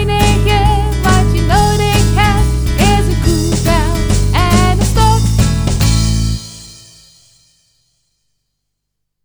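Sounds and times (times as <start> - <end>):
rock music with percussion and vocals: 0.0 - 6.4.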